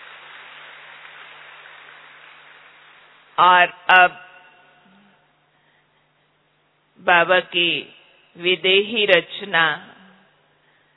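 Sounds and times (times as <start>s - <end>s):
audience applause: 0.0s - 3.1s
speech: 3.4s - 4.2s, 7.0s - 9.9s.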